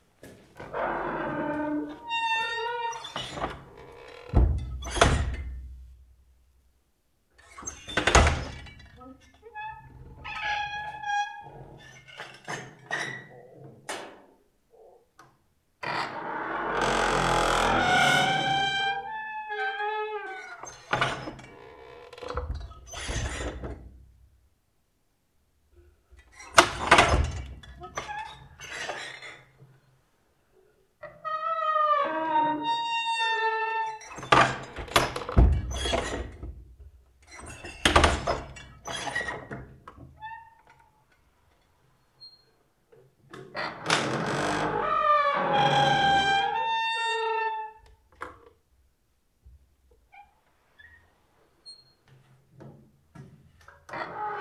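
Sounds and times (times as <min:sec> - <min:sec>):
squeaky door: 0:00.7 - 0:05.6, 0:07.4 - 0:13.4, 0:15.9 - 0:23.8, 0:26.3 - 0:29.5, 0:31.1 - 0:36.5, 0:37.3 - 0:39.6, 0:43.6 - 0:47.8, 0:50.2 - 0:52.0.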